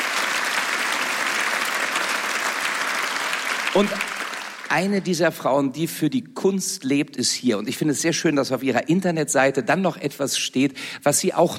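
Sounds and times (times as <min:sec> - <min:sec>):
audience applause: 0:00.0 - 0:05.0
speech: 0:03.7 - 0:04.1, 0:04.7 - 0:11.5.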